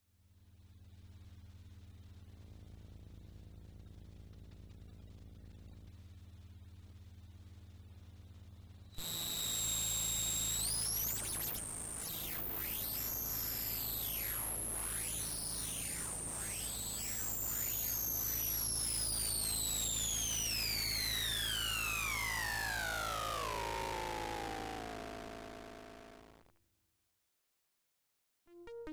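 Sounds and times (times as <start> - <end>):
Moog modular synthesizer: 9.0 - 26.5.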